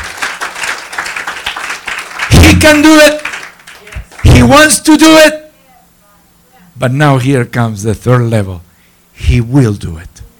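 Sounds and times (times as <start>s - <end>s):
audience clapping in praise: 0.0s - 4.6s
speech: 2.6s - 3.3s, 4.4s - 5.4s, 6.8s - 10.2s.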